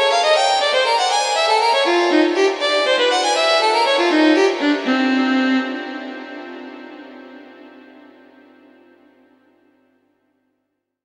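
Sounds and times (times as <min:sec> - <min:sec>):
solo violin sonata rondo allegro: 0:00.0 - 0:08.3.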